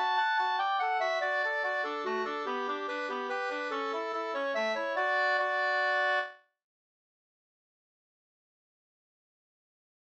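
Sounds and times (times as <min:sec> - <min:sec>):
hambo polka music: 0:00.0 - 0:06.3.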